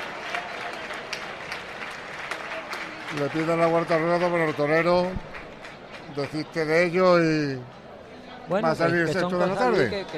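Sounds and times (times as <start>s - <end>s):
ovation from bullring crowd: 0.0s - 7.0s
speech: 3.1s - 5.3s, 6.1s - 7.8s, 8.5s - 10.1s.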